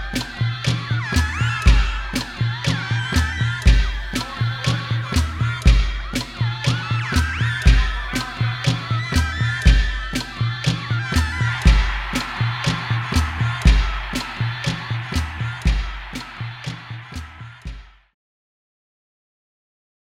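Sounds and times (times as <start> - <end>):
laughter: 0.1 - 17.7
electronica music: 11.4 - 17.7.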